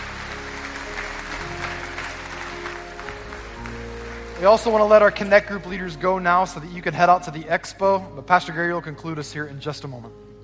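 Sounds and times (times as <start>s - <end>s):
church congregation applauding new members at a Sunday morning service: 0.0s - 5.7s
speech: 4.4s - 10.2s.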